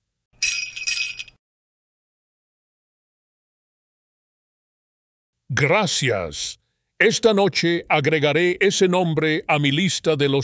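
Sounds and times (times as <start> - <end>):
sleigh bells jingling: 0.4 - 1.4
speech: 5.5 - 10.4.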